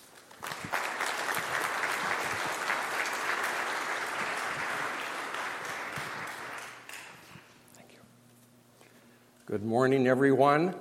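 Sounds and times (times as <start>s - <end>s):
crowd applause welcoming speakers: 0.0s - 7.5s
speech: 9.5s - 10.7s.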